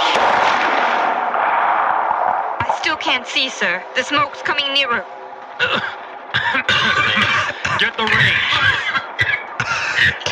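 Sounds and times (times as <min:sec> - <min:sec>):
staged sound effect of artillery guns firing in a battle scene: 0:00.0 - 0:03.0
speech: 0:03.1 - 0:09.3
laughter: 0:05.6 - 0:10.2.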